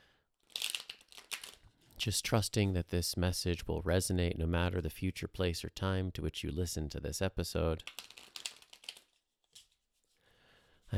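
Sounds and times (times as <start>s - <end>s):
tarot cards being shuffled: 0.4s - 1.6s, 7.8s - 9.8s
speech: 2.0s - 8.0s.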